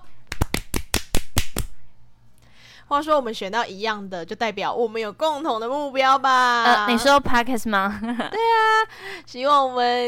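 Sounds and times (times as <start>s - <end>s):
hand clapping: 0.0s - 1.8s
speech: 2.9s - 10.0s.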